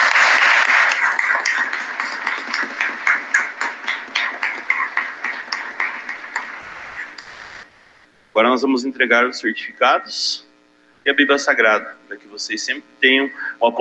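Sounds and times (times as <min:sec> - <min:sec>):
applause for the couples: 0:00.0 - 0:06.6
speech: 0:08.4 - 0:10.4, 0:11.1 - 0:13.8.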